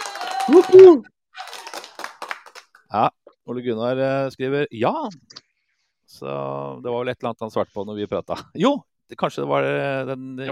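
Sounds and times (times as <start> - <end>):
whoop: 0.0 - 1.9
applause: 0.0 - 2.9
speech: 0.5 - 1.1, 2.9 - 5.4, 6.1 - 10.5.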